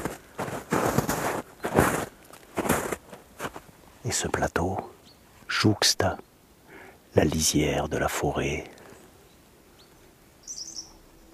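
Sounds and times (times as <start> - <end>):
steady low hiss: 0.0 - 11.3
faint birdsong at the edge of a forest beside a plateau: 1.5 - 1.8, 4.0 - 11.3
speech: 4.0 - 6.3, 7.1 - 8.8.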